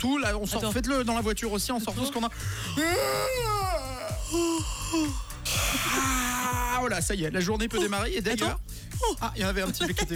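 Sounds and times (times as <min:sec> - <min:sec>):
speech: 0:00.0 - 0:10.1
several people yawning loudly together: 0:02.5 - 0:06.8.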